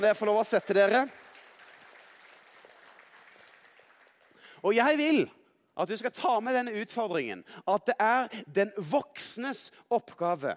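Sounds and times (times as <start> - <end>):
speech: 0.0 - 1.2, 4.6 - 10.5
audience applauding: 0.0 - 5.0.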